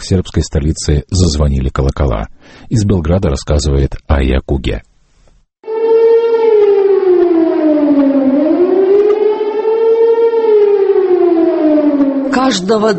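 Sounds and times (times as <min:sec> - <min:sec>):
speech: 0:00.1 - 0:04.9, 0:12.4 - 0:12.9
air raid all-clear siren in Serbian cities: 0:05.6 - 0:12.9.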